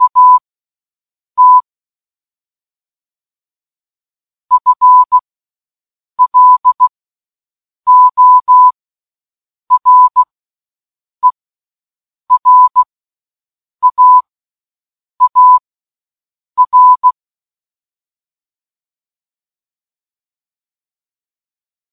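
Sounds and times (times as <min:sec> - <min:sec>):
morse code beeps: 0:00.0 - 0:00.4, 0:01.4 - 0:01.6, 0:04.5 - 0:05.2, 0:06.2 - 0:06.9, 0:07.9 - 0:08.8, 0:09.7 - 0:10.3, 0:12.3 - 0:12.9, 0:13.8 - 0:14.3, 0:15.2 - 0:15.6, 0:16.6 - 0:17.2.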